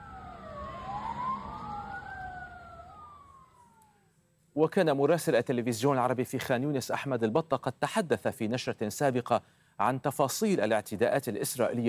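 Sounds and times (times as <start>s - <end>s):
low traffic rumble: 0.0s - 3.8s
ambulance siren in Gaza carrying the dead and wounded: 0.0s - 4.0s
speech: 4.6s - 11.8s.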